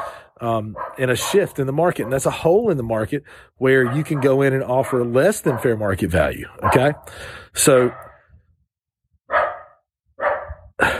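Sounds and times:
pet dog barking at home: 0.0 - 0.2, 0.8 - 2.3, 3.8 - 5.9, 6.6 - 7.1, 7.8 - 8.2, 9.3 - 10.7
speech: 0.4 - 8.0.

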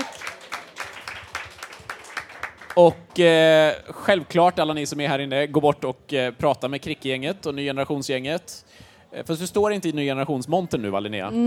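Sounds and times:
audience applause: 0.0 - 3.4
speech: 2.8 - 11.4.

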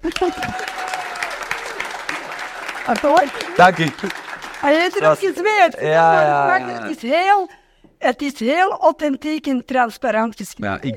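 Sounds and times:
audience applause: 0.0 - 6.8
speech: 0.1 - 0.6, 2.9 - 10.9.

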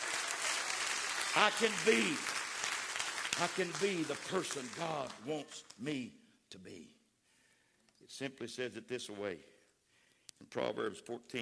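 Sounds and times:
audience clapping: 0.0 - 5.8
speech: 1.4 - 2.4, 3.4 - 7.0, 8.1 - 9.5, 10.4 - 11.4.

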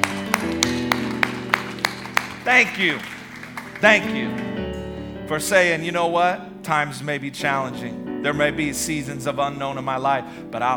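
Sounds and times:
audience clapping hands: 0.0 - 4.9
speech: 2.5 - 3.1, 3.8 - 4.5, 5.3 - 10.7.

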